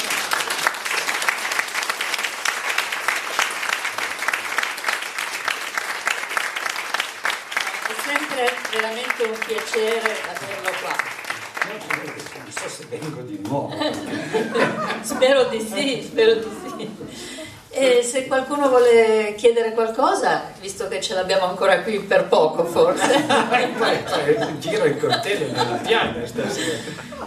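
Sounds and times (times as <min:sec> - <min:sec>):
audience applause: 0:00.0 - 0:13.6
speech: 0:08.8 - 0:27.1
laughter: 0:13.2 - 0:17.4, 0:22.7 - 0:27.2.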